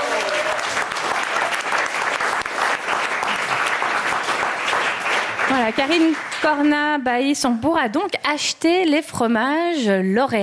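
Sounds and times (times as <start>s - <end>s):
audience applauding the chef: 0.0s - 7.0s
speech: 5.6s - 10.4s.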